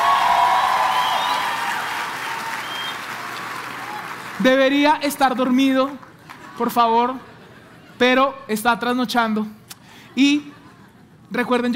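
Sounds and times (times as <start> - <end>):
audience applauding: 0.0 - 4.8
speech: 4.4 - 7.3, 8.0 - 9.6, 10.2 - 10.5, 11.3 - 11.7.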